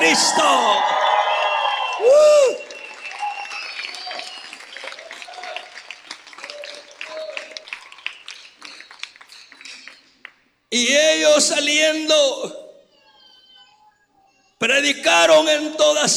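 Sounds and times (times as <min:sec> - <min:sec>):
large audience cheering and shouting: 0:00.0 - 0:07.6
whistle-like cry: 0:00.0 - 0:10.0
large audience applauding: 0:00.0 - 0:10.5
speech: 0:00.2 - 0:01.0, 0:02.0 - 0:02.7, 0:10.7 - 0:12.6, 0:14.6 - 0:16.1.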